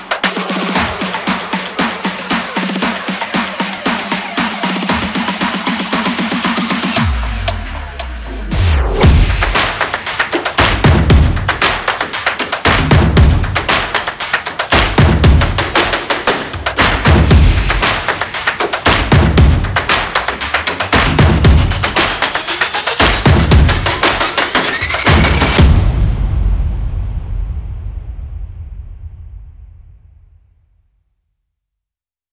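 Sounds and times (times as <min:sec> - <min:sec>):
hand claps: 0:00.0 - 0:08.1, 0:09.4 - 0:25.6
percussion: 0:00.0 - 0:30.0.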